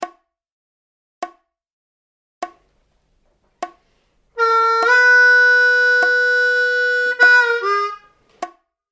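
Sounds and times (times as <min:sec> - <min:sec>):
harmonica lick: 0:04.4 - 0:08.2.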